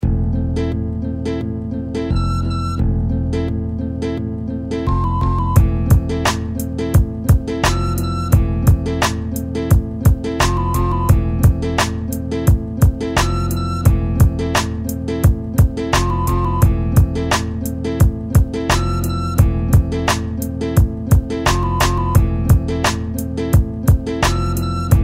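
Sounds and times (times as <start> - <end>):
instrumental music: 0.0 - 25.0.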